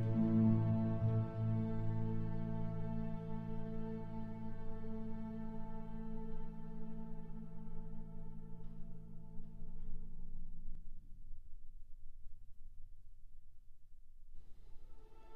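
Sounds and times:
cello and strings: 0.0s - 10.1s, 14.8s - 15.3s.

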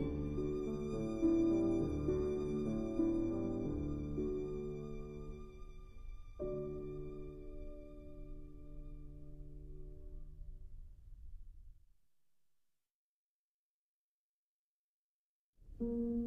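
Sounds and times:
violin: 0.0s - 9.8s
piano: 0.0s - 11.8s, 15.6s - 16.2s.

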